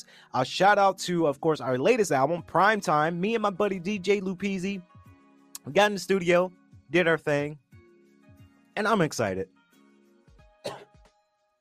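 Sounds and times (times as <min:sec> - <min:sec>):
speech: 0:00.0 - 0:04.9, 0:05.6 - 0:07.6, 0:08.8 - 0:09.6
person coughing: 0:10.6 - 0:10.9.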